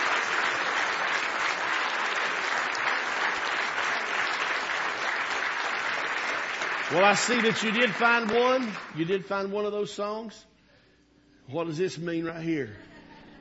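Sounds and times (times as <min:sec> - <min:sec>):
audience applause: 0:00.0 - 0:09.3
speech: 0:06.9 - 0:10.5, 0:11.5 - 0:12.9.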